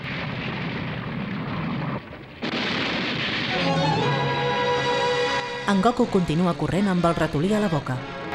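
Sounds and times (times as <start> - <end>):
cave ceiling collapsing rumble: 0.0 - 4.7
speech: 5.7 - 8.2.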